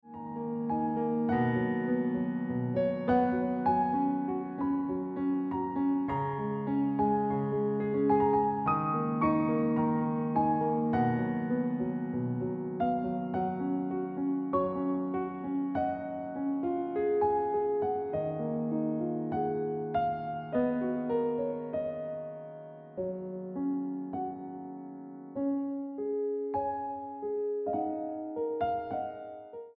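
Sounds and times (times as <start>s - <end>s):
piano ringtone music: 0.0s - 29.7s.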